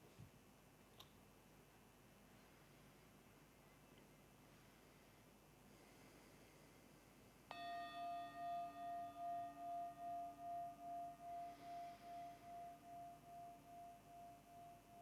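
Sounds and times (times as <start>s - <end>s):
meditation bell ringing: 7.5s - 15.0s.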